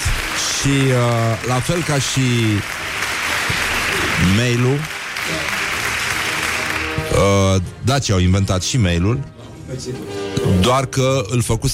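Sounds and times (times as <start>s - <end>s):
crowd applause: 0.0s - 7.5s
speech: 0.6s - 2.9s, 4.2s - 5.5s, 7.2s - 11.7s.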